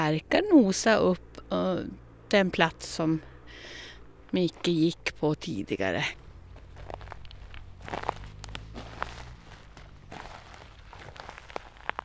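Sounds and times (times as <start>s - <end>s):
speech: 0.0s - 6.2s
footsteps of a dog and its owner running over moss in a pine forest: 6.0s - 12.0s.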